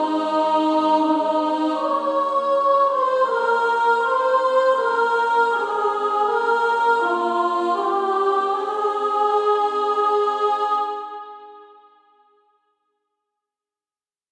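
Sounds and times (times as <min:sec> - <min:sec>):
female choir first sopranos singing: 0:00.0 - 0:11.8.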